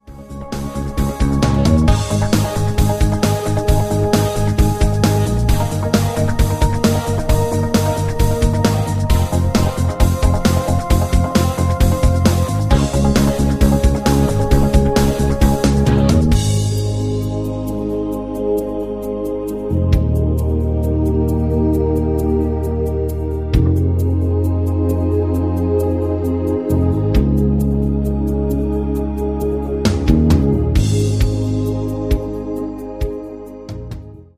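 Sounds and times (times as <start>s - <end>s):
rhythm: 0.0s - 34.3s.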